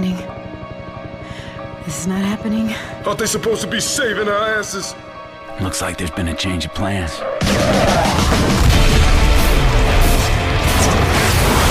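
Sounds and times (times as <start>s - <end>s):
speech: 1.8s - 8.0s
bombing explosions in a video game: 7.4s - 11.7s.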